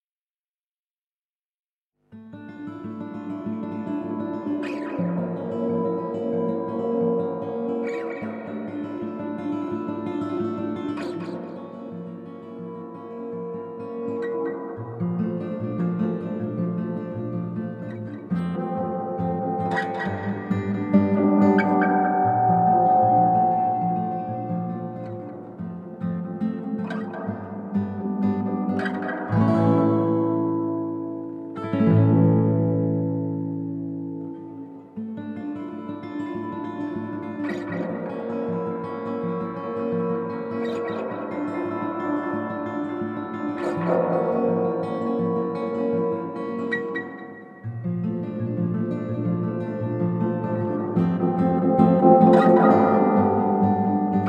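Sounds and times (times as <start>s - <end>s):
instrumental panic music: 2.1s - 54.2s.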